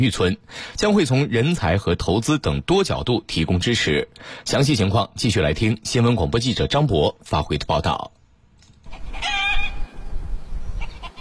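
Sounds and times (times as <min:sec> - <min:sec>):
speech: 0:00.0 - 0:08.2
hens clucking in a distant farmhouse yard in Taopeng village, Pinggu District, Beijing: 0:08.9 - 0:09.8, 0:10.8 - 0:11.1.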